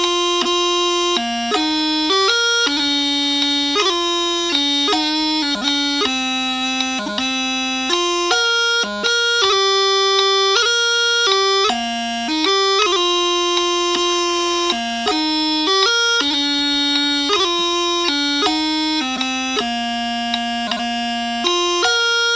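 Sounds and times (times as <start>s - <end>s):
bagpipe chanter: 0.0s - 22.3s.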